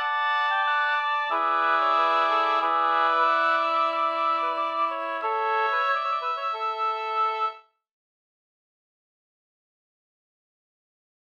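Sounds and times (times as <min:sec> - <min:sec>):
folk walking tune: 0:00.0 - 0:07.4.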